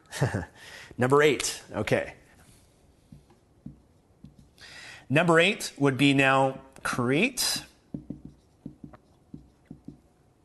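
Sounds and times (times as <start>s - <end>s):
speech: 0.2s - 2.2s, 5.1s - 7.7s
pen handwriting on paper at an angle: 7.9s - 10.4s.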